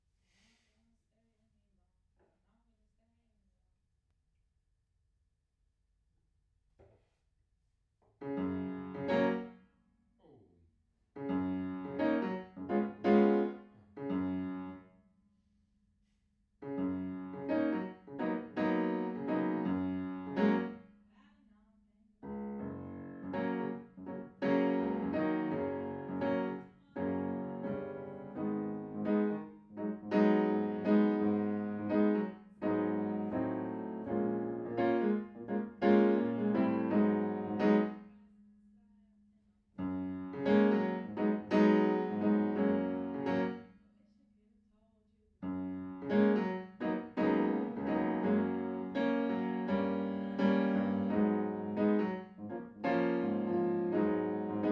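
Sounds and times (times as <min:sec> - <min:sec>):
piano in a room: 0:08.2 - 0:09.6, 0:11.2 - 0:15.0, 0:16.6 - 0:21.1, 0:22.2 - 0:38.8, 0:39.8 - 0:43.8, 0:45.4 - 0:54.6.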